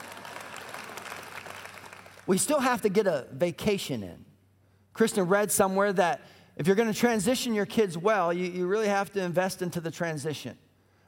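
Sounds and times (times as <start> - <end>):
audience applause: 0.0 - 2.3
speech: 2.3 - 4.3, 5.0 - 10.6.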